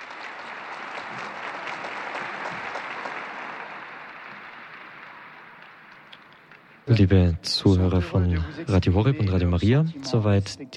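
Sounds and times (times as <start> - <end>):
applause of the faithful from a large crowd: 0.0 - 6.9
speech: 6.9 - 10.7.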